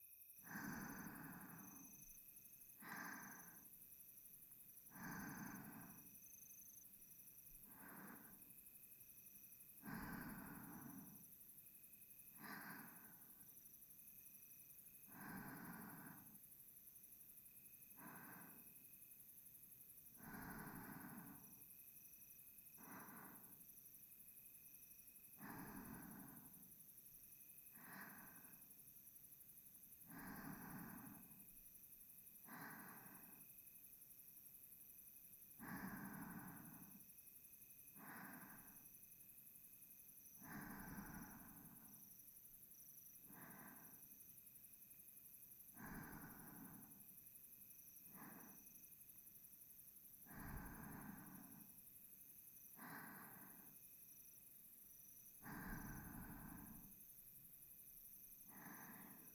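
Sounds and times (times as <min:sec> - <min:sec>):
reversed breathing of a sleeping person: 0:00.4 - 0:03.8, 0:04.8 - 0:06.6, 0:07.4 - 0:08.5, 0:09.8 - 0:11.4, 0:12.3 - 0:13.6, 0:15.0 - 0:16.5, 0:17.9 - 0:18.7, 0:20.1 - 0:21.6, 0:22.8 - 0:23.7, 0:25.3 - 0:26.8, 0:27.7 - 0:28.8, 0:30.0 - 0:31.6, 0:32.4 - 0:33.4, 0:35.6 - 0:37.0, 0:37.9 - 0:38.9, 0:40.4 - 0:42.1, 0:43.2 - 0:44.1, 0:45.6 - 0:47.1, 0:48.0 - 0:48.9, 0:50.2 - 0:51.8, 0:52.7 - 0:53.8, 0:55.4 - 0:57.0, 0:58.4 - 0:59.3.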